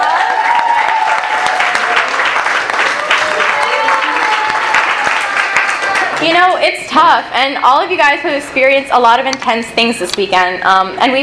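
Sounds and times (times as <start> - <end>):
round of applause: 0.0 - 6.5
speech: 6.2 - 11.2.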